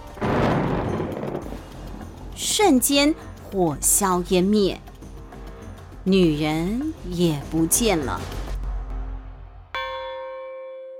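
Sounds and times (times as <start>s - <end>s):
huge thunder-like boom: 0.1s - 2.4s
speech: 2.4s - 4.9s, 6.0s - 8.4s.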